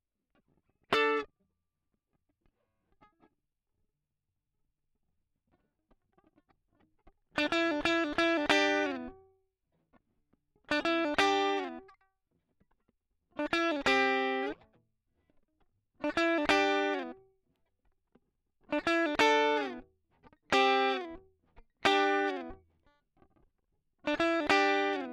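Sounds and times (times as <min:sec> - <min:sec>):
guitar solo line: 0:00.9 - 0:01.2, 0:07.4 - 0:09.2, 0:10.8 - 0:11.9, 0:13.4 - 0:14.6, 0:16.0 - 0:17.2, 0:18.7 - 0:19.8, 0:20.5 - 0:21.2, 0:21.8 - 0:22.6, 0:24.1 - 0:25.1.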